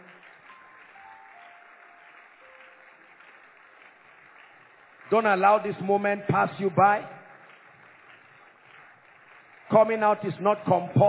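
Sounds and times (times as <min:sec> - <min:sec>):
audience clapping: 0:00.0 - 0:11.0
speech: 0:05.1 - 0:07.2, 0:09.7 - 0:11.0.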